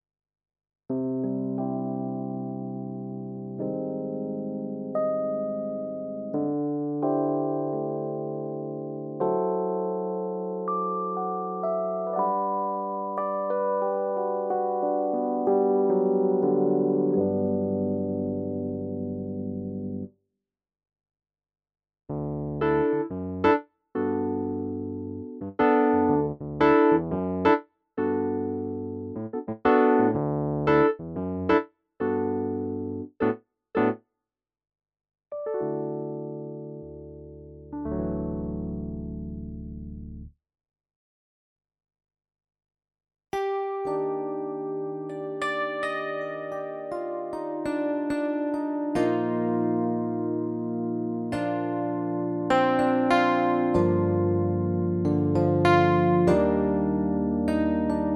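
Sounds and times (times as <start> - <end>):
PX5S electric piano: 0.9 - 20.1, 22.1 - 34.0, 35.3 - 40.3, 43.4 - 58.1.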